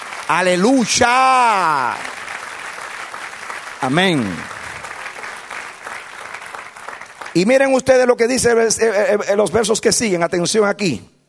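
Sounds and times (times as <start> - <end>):
church congregation clapping: 0.0 - 8.8
speech: 0.3 - 2.2, 3.8 - 4.6, 7.4 - 11.1.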